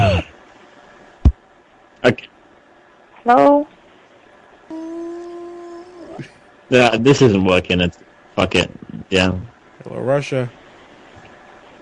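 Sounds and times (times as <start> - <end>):
faint background hiss: 0.0 - 11.8
speech: 2.0 - 2.3, 3.2 - 3.7, 6.2 - 10.6
dog howling: 4.7 - 6.2.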